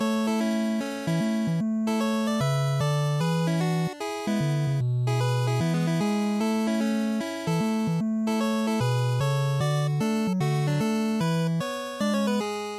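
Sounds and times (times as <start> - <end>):
NES chiptune title music: 0.0 - 12.7.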